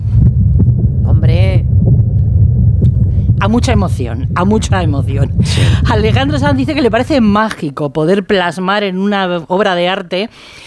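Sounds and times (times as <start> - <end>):
strong amplified heartbeat: 0.0 - 7.6
low rumbling hum: 0.0 - 7.8
speech: 3.4 - 10.6.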